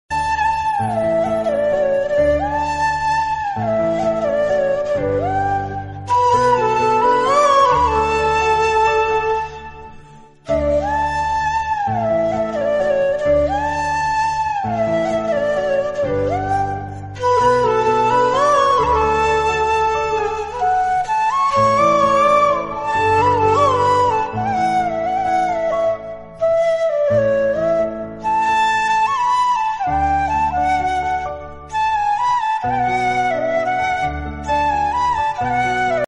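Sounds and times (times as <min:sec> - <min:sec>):
flute instrumental ringtone: 0:00.1 - 0:36.0.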